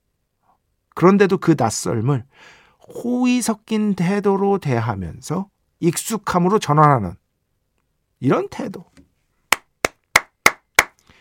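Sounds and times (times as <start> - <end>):
speech: 1.0 - 7.2, 8.2 - 8.9
crisp hand claps: 9.5 - 11.0.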